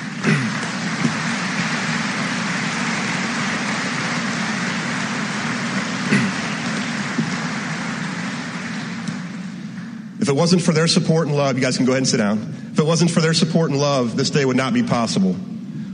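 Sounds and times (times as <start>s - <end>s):
graduates applauding their families: 0.0s - 10.0s
speech: 10.3s - 15.5s.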